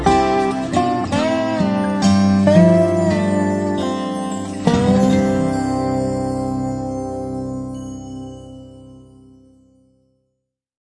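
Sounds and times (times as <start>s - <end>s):
dobro: 0.0s - 9.4s.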